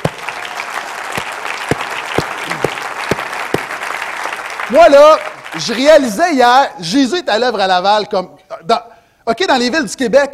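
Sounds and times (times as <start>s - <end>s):
audience applause: 0.0s - 6.0s
speech: 4.7s - 10.3s.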